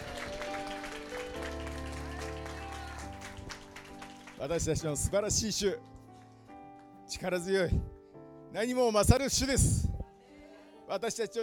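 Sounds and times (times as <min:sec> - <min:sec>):
audience applause: 0:00.0 - 0:04.6
speech: 0:04.4 - 0:05.9, 0:07.1 - 0:07.9, 0:08.5 - 0:09.8, 0:10.9 - 0:11.4.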